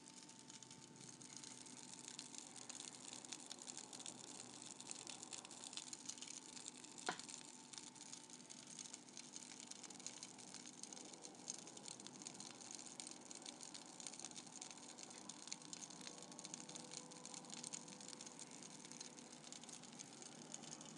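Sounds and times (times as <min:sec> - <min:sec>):
rice vermicelli in hot water: 0:00.0 - 0:20.9.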